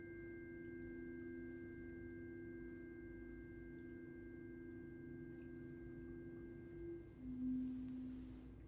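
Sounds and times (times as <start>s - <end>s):
tuning forks ringing: 0.0s - 8.5s.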